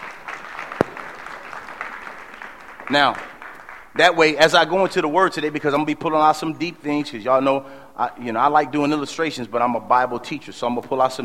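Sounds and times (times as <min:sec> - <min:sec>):
audience applause: 0:00.0 - 0:03.8
sharp loud clap: 0:00.0 - 0:03.9
speech: 0:02.9 - 0:03.3, 0:04.0 - 0:11.2.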